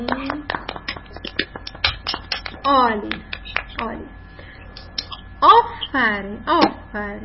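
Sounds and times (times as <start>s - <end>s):
children clapping for a classmate: 0.0s - 3.9s.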